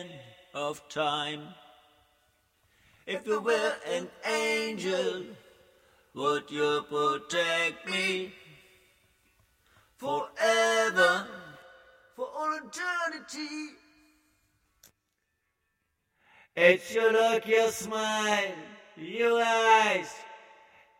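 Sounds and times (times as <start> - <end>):
a cappella folk singing: 0.0 - 1.8, 2.7 - 9.1, 9.7 - 13.8, 16.6 - 20.9.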